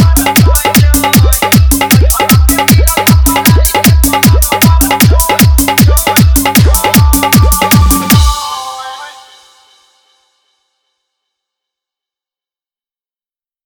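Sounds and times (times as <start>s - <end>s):
dholki dance mix with bass: 0.0s - 9.8s.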